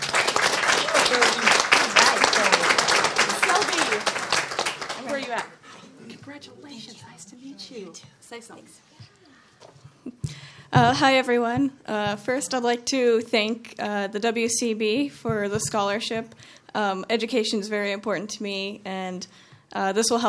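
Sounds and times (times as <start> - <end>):
audience applauding to welcome a scholarship recipient: 0.0 - 5.6
speech: 8.3 - 9.0, 10.7 - 20.2.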